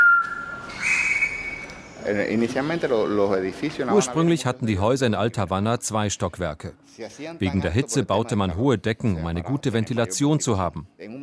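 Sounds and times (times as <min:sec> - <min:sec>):
green parrot whistling a greeting: 0:00.0 - 0:02.0
speech: 0:02.1 - 0:11.2.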